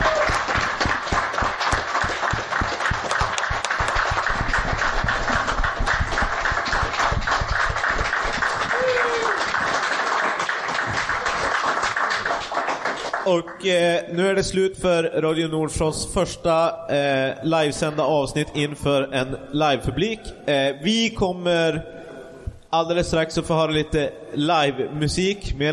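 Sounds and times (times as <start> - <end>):
audience applause: 0.0 - 13.5
speech: 13.3 - 22.0, 22.7 - 25.7.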